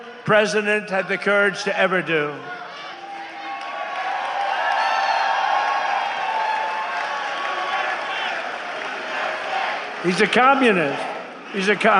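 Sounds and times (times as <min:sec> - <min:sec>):
speech: 0:00.3 - 0:02.6, 0:10.0 - 0:11.9
audience clapping: 0:03.2 - 0:11.9.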